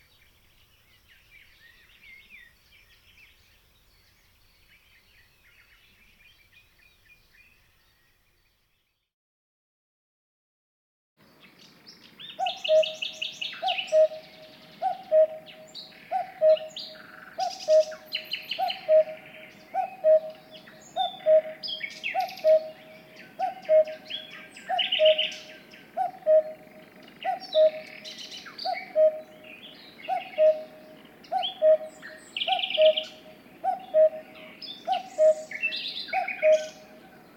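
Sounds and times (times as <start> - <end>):
songbirds twittering: 0.0 - 9.1, 11.2 - 37.3
cuckoo calling: 12.3 - 37.3.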